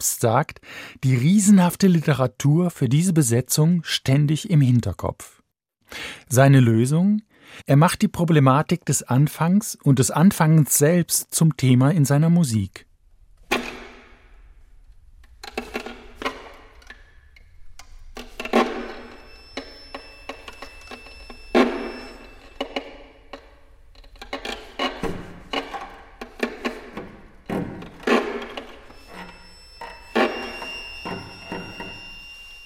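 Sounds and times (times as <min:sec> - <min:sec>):
speech: 0:00.0 - 0:12.9
string quartet bows pressed hard onto the strings, creaking: 0:13.4 - 0:32.6
faint high whistling tones from string quartet: 0:18.8 - 0:23.2, 0:28.8 - 0:32.6.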